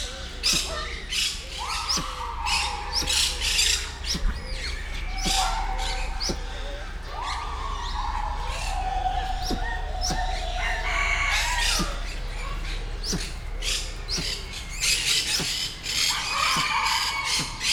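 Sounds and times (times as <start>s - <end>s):
helmeted curassow grunting in a zoo: 0.0s - 17.7s.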